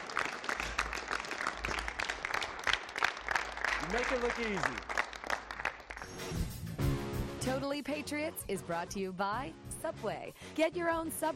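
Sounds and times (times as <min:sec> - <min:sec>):
audience applause and cheering: 0:00.0 - 0:06.6
speech: 0:03.9 - 0:04.9, 0:07.4 - 0:11.3.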